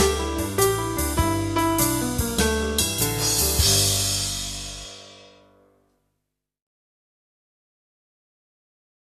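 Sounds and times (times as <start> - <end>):
jazz session: 0.0 - 5.7.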